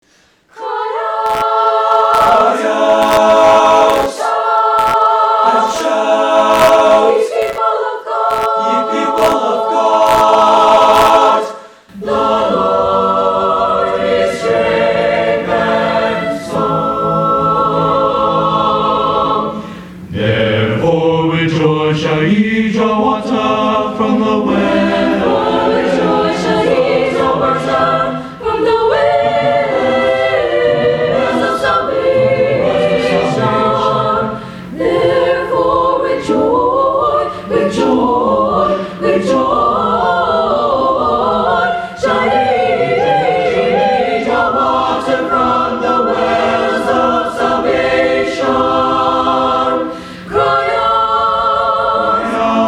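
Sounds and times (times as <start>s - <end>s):
chorale: 0.0s - 52.6s.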